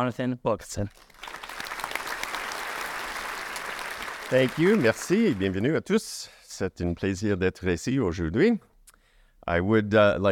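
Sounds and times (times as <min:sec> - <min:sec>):
speech: 0:00.0 - 0:01.4, 0:04.3 - 0:08.7, 0:09.5 - 0:10.3
audience applause at a Canada 2020 event: 0:01.0 - 0:05.6.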